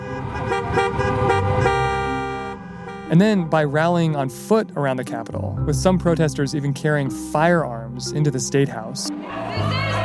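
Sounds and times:
car horns honking in a protest traffic jam in Michigan: 0.0s - 4.2s
speech: 3.1s - 9.9s.

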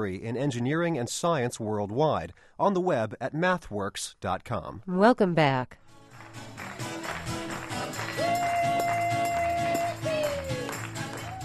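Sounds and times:
speech: 0.0s - 6.8s
gospel music from a church in Charlottesville, Virginia: 6.0s - 11.4s
rhythmic beat with clap-like hits: 6.1s - 11.4s.

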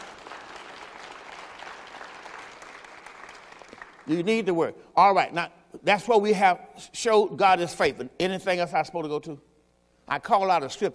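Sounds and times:
audience clapping hands: 0.0s - 4.3s
speech: 4.1s - 9.5s, 10.1s - 10.9s.

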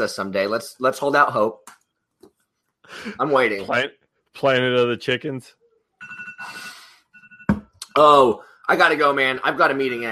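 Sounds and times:
speech: 0.0s - 1.8s, 2.9s - 5.6s, 8.0s - 10.1s
phone alarm: 6.0s - 7.6s.

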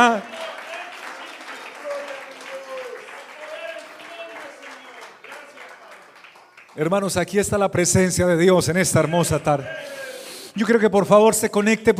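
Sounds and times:
speech: 0.0s - 0.4s, 6.8s - 11.9s
audience applause: 0.0s - 7.1s, 8.7s - 9.7s.

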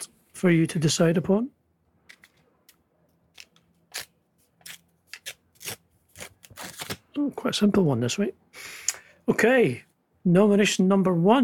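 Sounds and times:
speech: 0.4s - 1.6s, 7.3s - 8.4s, 9.3s - 11.4s
envelope being opened: 3.3s - 7.1s.

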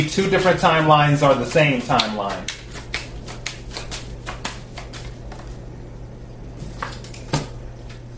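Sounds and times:
speech: 0.0s - 2.6s
low steady hum: 0.0s - 8.1s
card drawn from a deck during a card reading: 1.9s - 5.5s.

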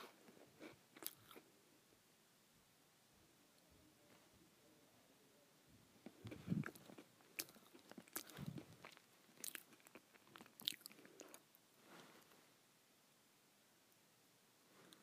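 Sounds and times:
person eating crackers: 0.6s - 1.5s, 6.1s - 11.5s.

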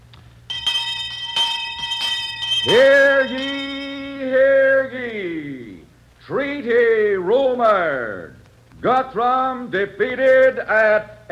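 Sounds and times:
school handbell ringing: 0.5s - 5.1s
speech: 2.6s - 3.7s, 6.3s - 11.2s.

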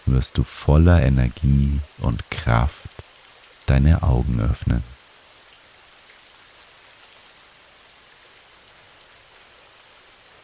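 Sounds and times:
rain falling: 0.0s - 10.4s
speech: 0.1s - 3.1s, 3.7s - 4.9s.

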